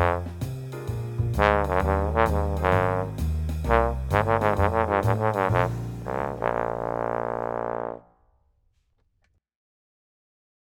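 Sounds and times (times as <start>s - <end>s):
jazz bass trombone: 0.0s - 8.1s.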